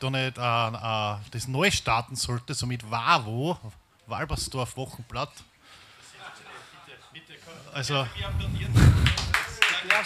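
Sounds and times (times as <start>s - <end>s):
speech: 0.0s - 5.5s, 7.5s - 9.1s
hand claps: 9.0s - 10.0s.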